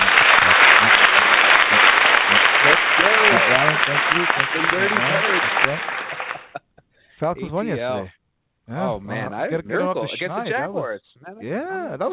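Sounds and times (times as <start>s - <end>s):
applause: 0.0s - 6.6s
voices calling out and cheering: 0.0s - 6.6s, 8.7s - 12.1s
laughter: 0.0s - 6.8s, 9.0s - 10.8s
speech: 3.9s - 6.0s, 7.2s - 12.1s.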